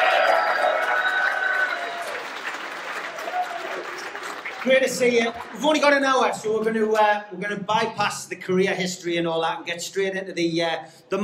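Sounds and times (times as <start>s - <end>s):
audience applause: 0.0s - 5.6s
speech: 4.6s - 11.2s.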